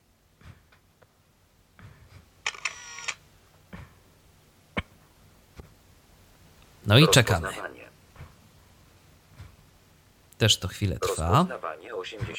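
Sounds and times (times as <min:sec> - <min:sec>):
camera mechanical whirring: 0:02.4 - 0:03.2
camera shutter click: 0:02.5 - 0:03.2
speech: 0:06.9 - 0:07.7, 0:10.4 - 0:12.3.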